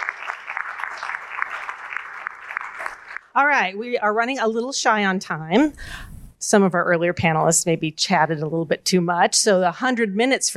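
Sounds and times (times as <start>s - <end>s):
audience clapping: 0.0s - 3.3s
speech: 3.4s - 10.5s.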